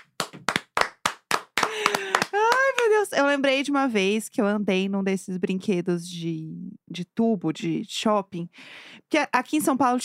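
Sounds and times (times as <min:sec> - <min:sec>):
hand clapping: 0:00.0 - 0:03.0
speech: 0:03.0 - 0:10.0.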